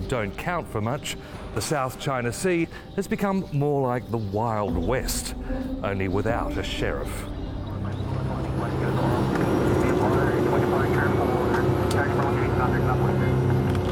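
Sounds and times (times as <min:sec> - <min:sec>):
speech: 0:00.1 - 0:07.4
small Cessna propeller plane engine drone in flight: 0:06.5 - 0:13.9.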